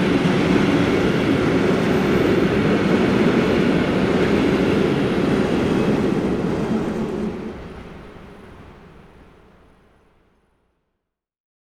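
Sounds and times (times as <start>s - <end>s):
long tank car train passing by: 0.0s - 10.2s.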